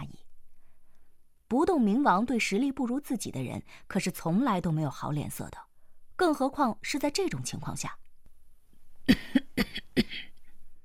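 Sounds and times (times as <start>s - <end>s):
speech: 1.5s - 8.0s, 9.1s - 10.3s
old woman coughing: 9.1s - 10.4s.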